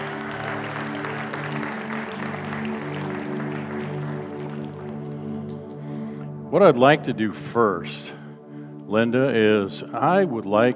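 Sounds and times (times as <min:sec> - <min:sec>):
audience clapping: 0:00.0 - 0:06.3
sustained musical tones: 0:00.0 - 0:10.7
speech: 0:06.5 - 0:08.2, 0:08.9 - 0:10.7.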